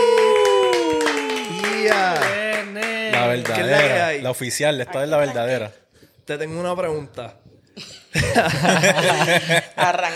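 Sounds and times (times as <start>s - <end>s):
cheers and whoops: 0.0s - 2.3s
audience applause: 0.0s - 4.0s
speech: 3.4s - 10.1s
laughter: 8.1s - 10.1s.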